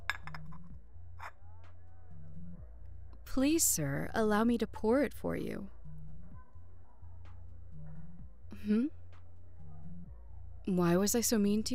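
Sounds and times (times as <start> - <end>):
ceramic cup set down with a clink: 0.1 - 0.6
speech: 3.4 - 5.8, 8.7 - 9.0, 10.6 - 11.7.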